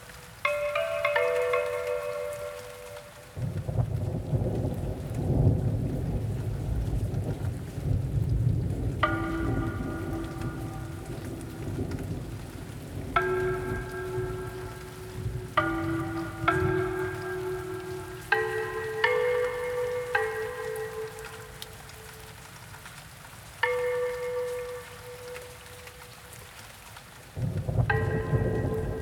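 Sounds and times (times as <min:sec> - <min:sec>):
Asian bells ringing: 0:00.4 - 0:03.4, 0:09.0 - 0:22.3, 0:23.6 - 0:26.2, 0:27.9 - 0:29.0
thunderstorm: 0:03.3 - 0:22.3, 0:27.3 - 0:29.0.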